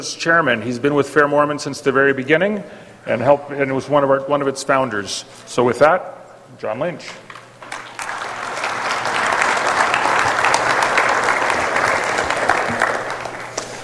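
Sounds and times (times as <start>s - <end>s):
speech: 0.0s - 7.2s
audience applause: 7.3s - 13.8s.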